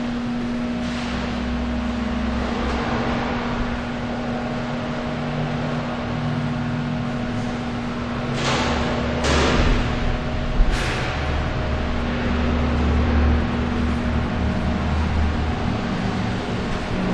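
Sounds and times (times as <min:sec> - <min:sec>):
subway station ambience: 0:00.0 - 0:17.1.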